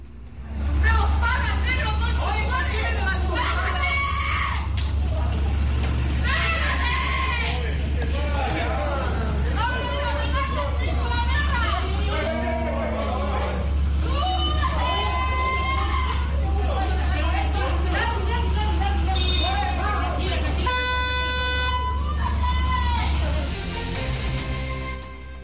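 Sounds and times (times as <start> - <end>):
ambient noise of a street fight at night: 0.0 - 25.4
car horns honking: 18.4 - 22.1.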